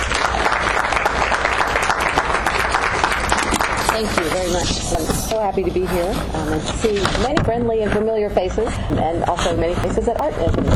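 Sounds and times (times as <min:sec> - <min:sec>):
audience applause welcoming a speaker to an evening talk on Kentucky farming: 0:00.0 - 0:05.0
speech: 0:04.0 - 0:10.7.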